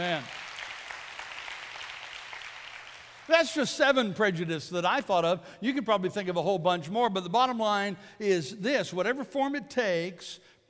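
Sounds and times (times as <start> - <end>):
speech: 0.0 - 0.4, 3.3 - 10.6
audience hand clapping: 0.0 - 3.4.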